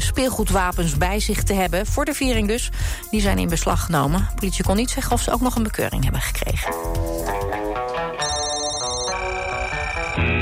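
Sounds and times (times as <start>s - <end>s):
speech: 0.1s - 7.6s
electronic game alarm jingle: 8.2s - 10.3s.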